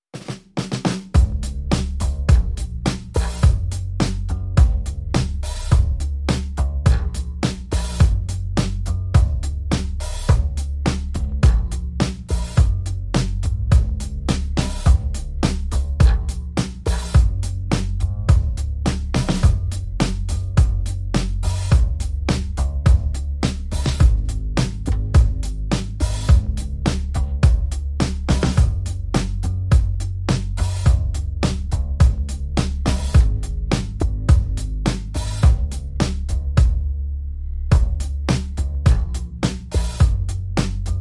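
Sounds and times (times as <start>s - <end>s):
drums: 0.0s - 36.9s, 37.7s - 40.9s
bass: 0.0s - 40.9s.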